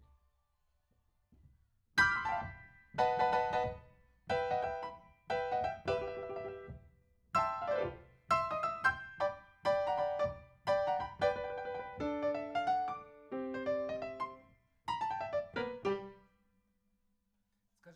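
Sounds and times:
rock and roll piano: 2.0s - 6.8s, 7.4s - 16.2s.

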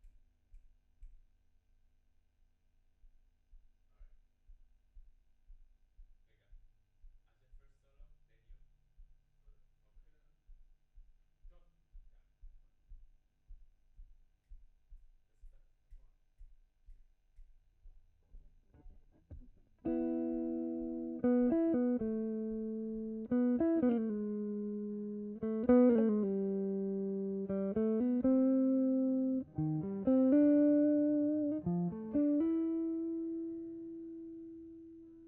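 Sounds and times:
guitar: 18.7s - 35.2s.

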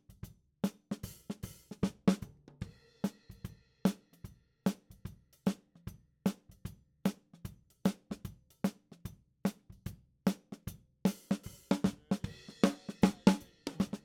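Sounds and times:
snare drum top in ragtime style: 0.7s - 3.2s, 10.3s - 14.0s.

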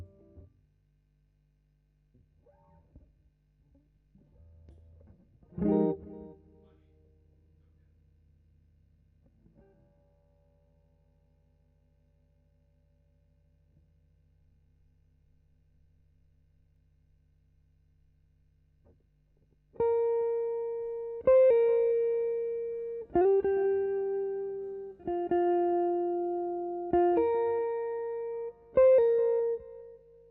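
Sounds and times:
guitar: 0.0s - 0.5s, 2.1s - 8.0s, 9.2s - 10.9s, 19.7s - 30.3s.

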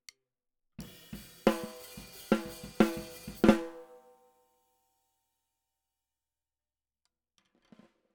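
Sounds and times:
snare drum: 0.8s - 4.1s.

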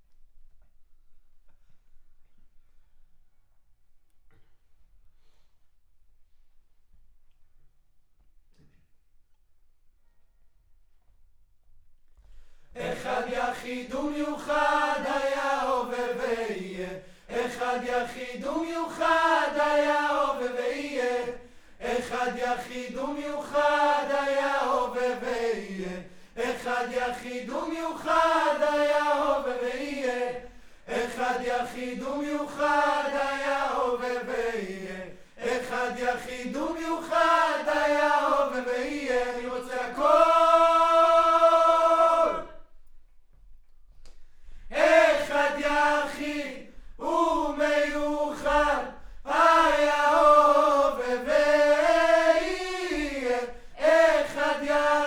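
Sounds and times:
choir singing: 12.8s - 42.7s, 44.7s - 55.0s.

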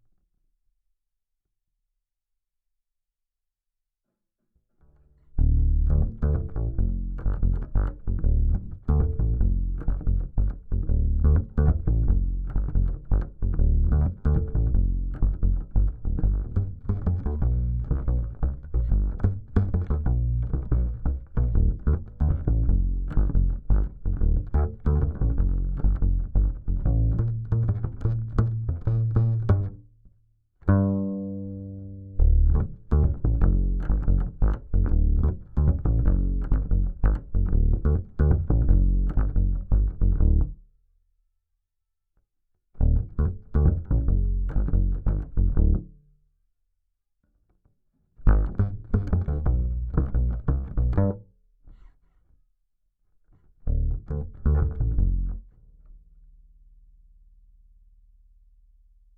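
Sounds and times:
bass guitar recorded by direct input: 4.8s - 30.0s, 30.6s - 40.7s, 42.8s - 46.1s, 48.2s - 52.0s, 53.4s - 56.4s.

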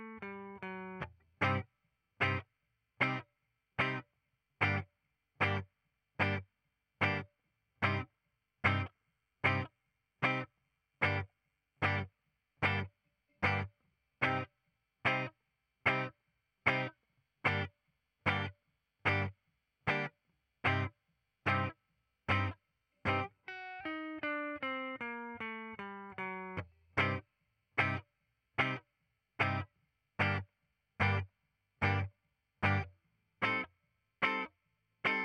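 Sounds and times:
ragtime guitar: 0.0s - 1.6s, 2.2s - 2.4s, 3.8s - 4.0s, 5.4s - 5.6s, 7.0s - 7.2s, 7.8s - 8.0s, 8.6s - 11.2s, 11.8s - 14.5s, 15.1s - 15.3s, 15.9s - 16.1s, 16.7s - 16.9s, 17.5s - 17.7s, 18.3s - 18.5s, 19.1s - 19.3s, 19.9s - 20.9s, 21.5s - 21.7s, 22.3s - 27.2s, 27.8s - 28.0s, 28.6s - 28.8s, 29.4s - 29.6s, 30.2s - 30.4s, 31.0s - 31.2s, 31.8s - 34.5s, 35.1s - 35.2s.

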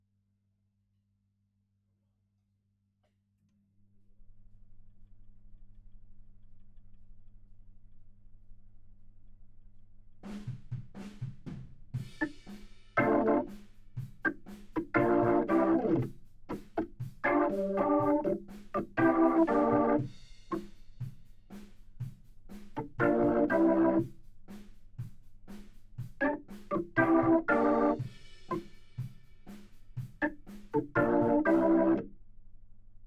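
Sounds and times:
Hammond organ: 13.0s - 13.6s, 14.2s - 20.6s, 22.8s - 24.1s, 26.2s - 28.7s, 30.2s - 32.1s.

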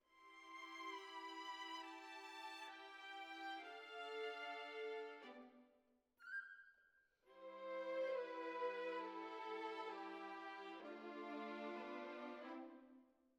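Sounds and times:
violins: 0.1s - 5.6s, 7.3s - 12.8s.

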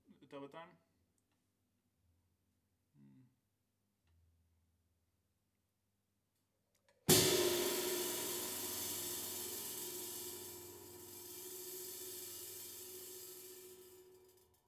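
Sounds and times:
ride cymbal: 7.1s - 14.6s.

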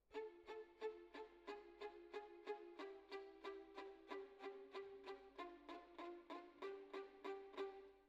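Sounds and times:
violin solo: 0.0s - 8.0s.

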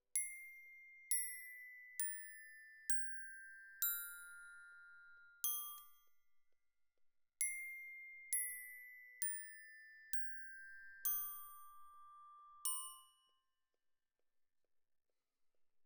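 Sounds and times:
glockenspiel: 0.2s - 6.2s, 7.4s - 13.6s.

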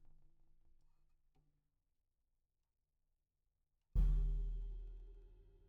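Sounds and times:
snare drum recorded from the bottom: 4.0s - 5.5s.

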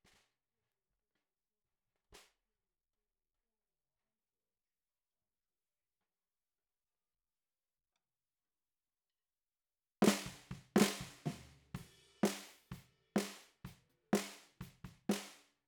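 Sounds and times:
bottom snare drum: 10.0s - 15.4s.

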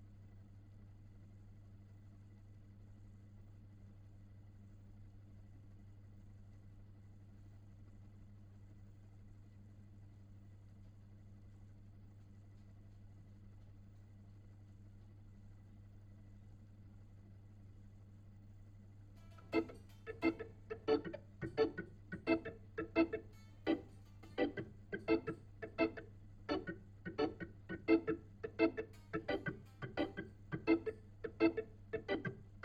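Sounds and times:
Hammond organ through a Leslie speaker: 19.2s - 32.6s.

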